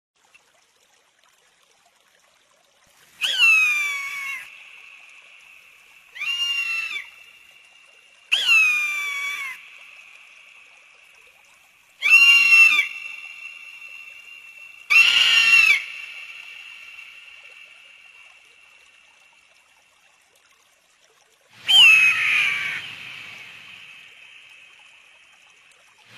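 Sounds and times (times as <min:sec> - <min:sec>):
wedge-tailed eagle calling in high thin whistles: 0:03.2 - 0:04.5, 0:06.1 - 0:07.1, 0:08.3 - 0:09.6, 0:12.0 - 0:14.0, 0:14.9 - 0:16.4, 0:21.6 - 0:23.5.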